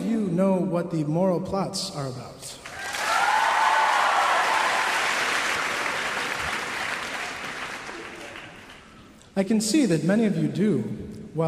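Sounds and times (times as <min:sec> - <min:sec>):
speech: 0:00.4 - 0:02.6, 0:09.4 - 0:11.4
crowd clapping: 0:02.6 - 0:09.2.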